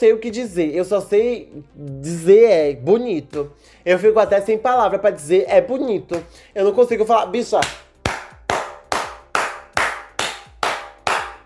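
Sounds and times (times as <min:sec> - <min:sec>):
speech: 0:00.0 - 0:07.8
clapping: 0:07.6 - 0:11.4.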